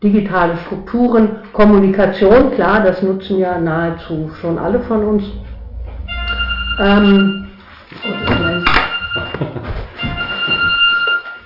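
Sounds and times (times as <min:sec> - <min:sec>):
speech: 0:00.0 - 0:05.5, 0:06.8 - 0:08.6
telephone ringing: 0:06.1 - 0:11.4.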